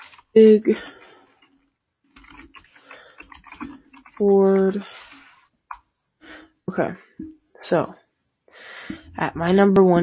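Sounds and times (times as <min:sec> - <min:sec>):
speech: 0:00.4 - 0:01.0, 0:04.2 - 0:05.0, 0:06.7 - 0:08.0, 0:08.9 - 0:10.0
typing on a computer keyboard: 0:02.1 - 0:05.8.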